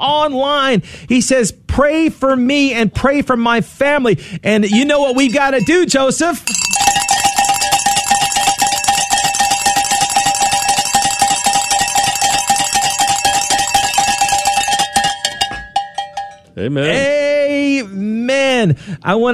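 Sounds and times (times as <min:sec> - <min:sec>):
speech: 0:00.0 - 0:07.0, 0:16.6 - 0:17.2, 0:18.6 - 0:19.3
celebration bell ringing: 0:04.7 - 0:16.6.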